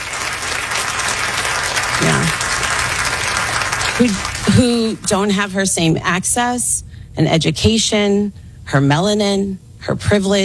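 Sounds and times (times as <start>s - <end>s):
people clapping: 0.0s - 5.1s
speech: 4.0s - 10.4s.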